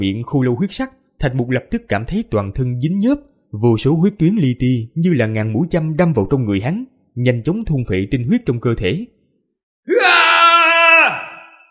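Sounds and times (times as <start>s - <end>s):
speech: 0.0s - 9.2s, 9.8s - 10.3s
long scream: 9.9s - 11.6s.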